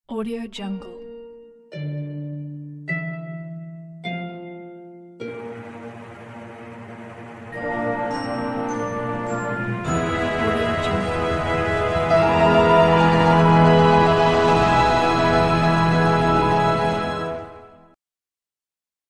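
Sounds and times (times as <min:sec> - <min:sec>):
grand orchestral logo music: 0:05.3 - 0:17.9.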